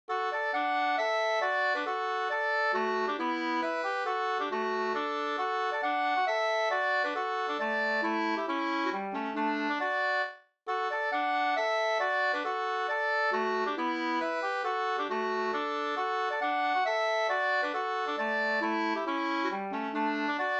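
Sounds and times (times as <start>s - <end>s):
hambo polka music: 0.1s - 20.5s.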